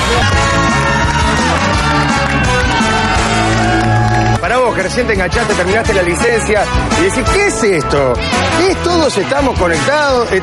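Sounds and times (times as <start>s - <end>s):
studio audience cheering and yelling: 0.0s - 4.7s
speech: 4.8s - 10.4s.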